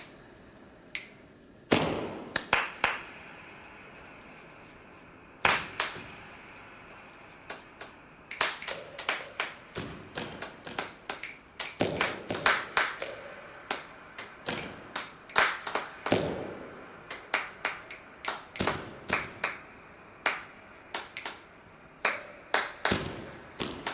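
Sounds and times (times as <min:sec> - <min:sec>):
clapping thread noise: 0:02.3 - 0:03.4, 0:05.4 - 0:06.3, 0:07.2 - 0:16.4, 0:17.0 - 0:23.9.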